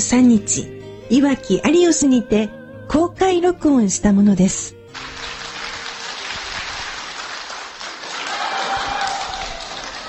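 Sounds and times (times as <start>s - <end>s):
speech: 0.0s - 5.1s
crowd clapping: 4.9s - 10.0s.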